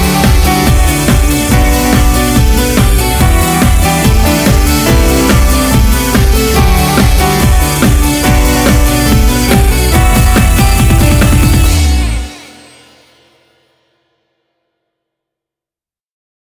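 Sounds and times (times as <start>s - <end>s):
Japanese instrumental disco music: 0.0s - 13.0s.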